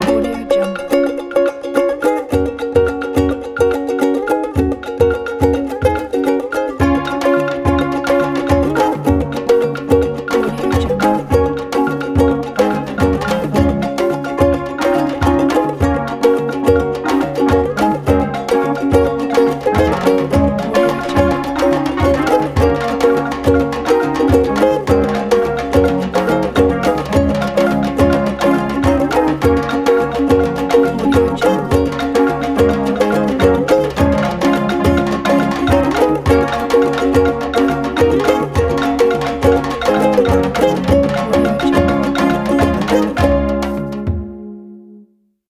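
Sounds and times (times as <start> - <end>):
African fusion groove: 0.0 - 44.6.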